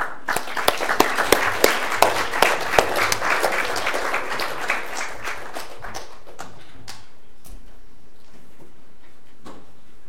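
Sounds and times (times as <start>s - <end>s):
audience applause welcoming a speaker: 0.0s - 6.6s.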